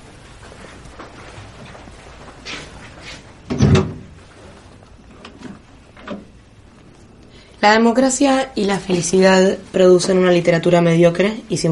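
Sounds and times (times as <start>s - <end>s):
faint rustling and soft handling sounds: 0.0s - 11.7s
bedroom door opening with thump and creak: 3.5s - 4.2s
speech: 7.6s - 11.7s.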